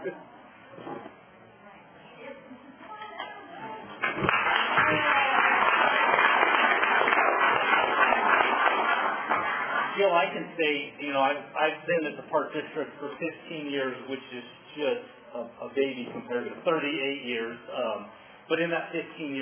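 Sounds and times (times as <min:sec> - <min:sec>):
audience applause: 0:04.0 - 0:10.2
speech: 0:10.6 - 0:19.3.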